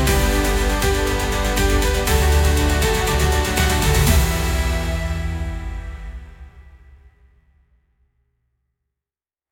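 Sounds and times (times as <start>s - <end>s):
intense emotional motivational music: 0.0s - 7.1s.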